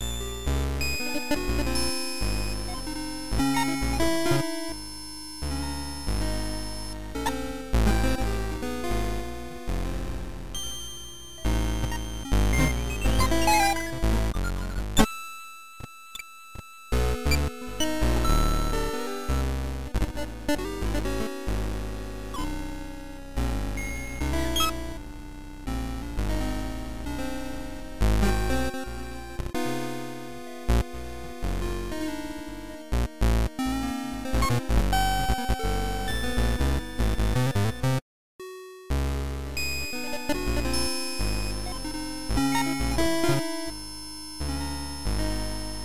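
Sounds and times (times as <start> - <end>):
game background music loop: 0.0 - 45.8.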